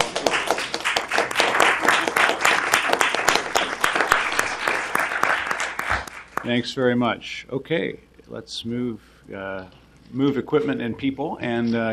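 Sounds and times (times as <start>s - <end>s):
room full of people applauding: 0.0s - 6.6s
speech: 6.5s - 11.9s.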